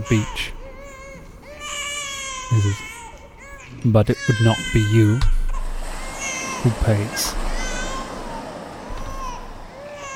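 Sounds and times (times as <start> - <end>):
speech: 0.0 - 0.6, 2.5 - 2.9, 3.8 - 5.4, 6.6 - 7.5
baby crying: 0.0 - 10.1
low thump: 5.2 - 10.1.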